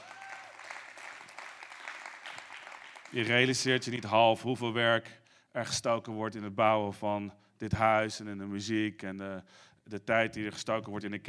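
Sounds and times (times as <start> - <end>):
church congregation applauding the band: 0.0 - 4.2
speech: 3.1 - 11.2.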